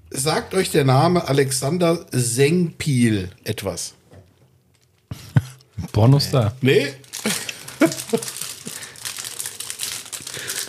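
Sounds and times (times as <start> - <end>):
speech: 0.2 - 4.0, 5.9 - 8.3
chocolate bar wrapper being unwrapped: 6.7 - 10.6
laughter: 7.2 - 8.4.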